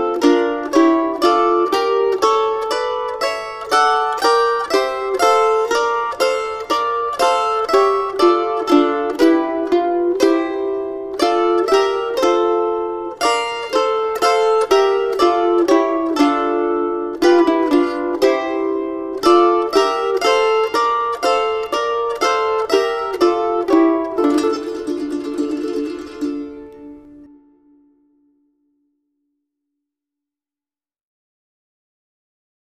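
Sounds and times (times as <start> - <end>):
mandolin playing a Christmas carol: 0.0 - 28.5.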